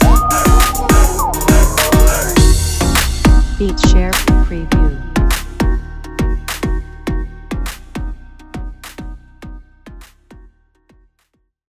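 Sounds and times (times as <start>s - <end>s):
urban beat sample: 0.0s - 9.2s.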